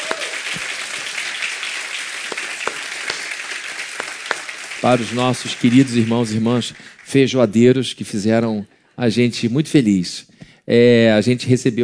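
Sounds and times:
audience applause: 0.0 - 7.4
speech: 4.8 - 11.8.

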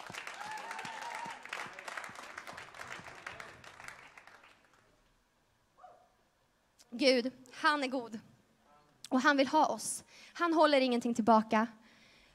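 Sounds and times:
applause: 0.0 - 5.1
speech: 7.0 - 8.3, 9.1 - 11.8.

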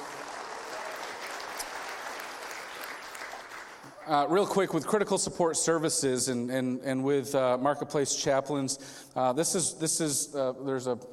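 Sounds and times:
audience applause: 0.0 - 4.2
speech: 4.1 - 11.1.

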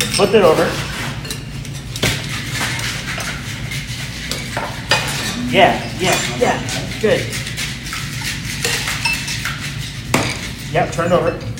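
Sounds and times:
speech: 0.2 - 0.9, 5.5 - 7.4, 10.7 - 11.5
cocktail shaken in mixing glass: 2.6 - 10.0.

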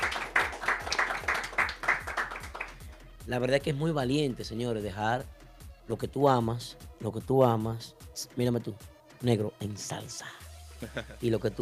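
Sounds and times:
applause: 0.0 - 3.1
speech: 3.3 - 11.5
laughter: 10.8 - 11.2.

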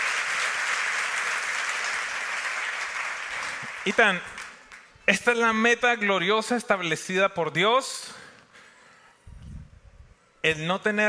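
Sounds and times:
strong audience applause: 0.0 - 4.9
speech: 3.8 - 4.3, 5.1 - 8.2, 10.4 - 11.0.

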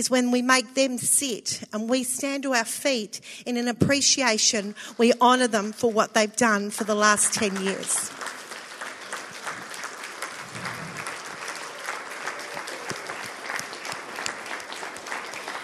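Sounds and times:
speech: 0.0 - 8.4
audience clapping: 6.8 - 15.6.

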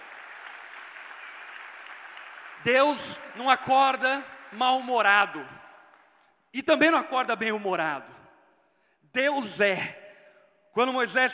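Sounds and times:
audience applause: 0.0 - 5.0
speech: 2.6 - 5.6, 6.5 - 8.2, 9.1 - 10.0, 10.8 - 11.3.

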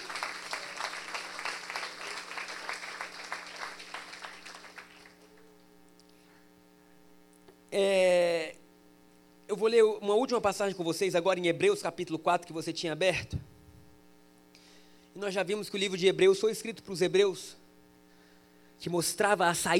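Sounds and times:
audience applauding: 0.0 - 5.4
speech: 7.8 - 8.0, 9.6 - 13.5, 15.2 - 17.6, 18.8 - 19.7.

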